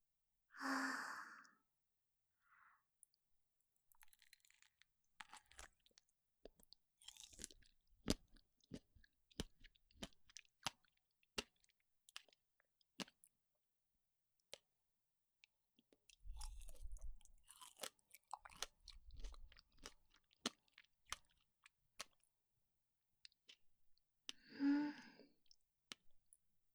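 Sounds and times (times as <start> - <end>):
breathy sighs: 0.6 - 1.6, 24.4 - 25.3
quiet chewing of strawberries and blueberries: 4.0 - 12.3, 16.3 - 22.3.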